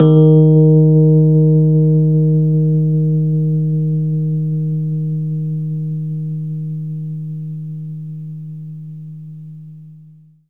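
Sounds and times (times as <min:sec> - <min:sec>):
Rhodes electric piano D# note: 0:00.0 - 0:05.5.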